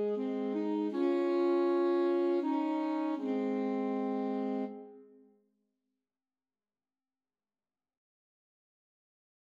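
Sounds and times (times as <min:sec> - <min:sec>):
alto saxophone trio playing a Christmas carol: 0:00.0 - 0:04.9.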